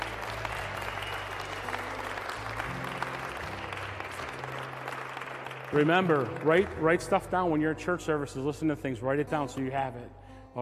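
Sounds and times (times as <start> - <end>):
audience clapping: 0.0 - 7.7
speech: 5.7 - 10.6.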